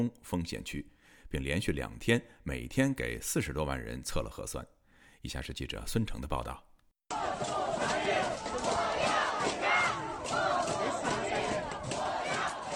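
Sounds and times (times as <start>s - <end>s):
speech: 0.0s - 8.6s
protest crowd chanting slogans: 7.1s - 12.7s.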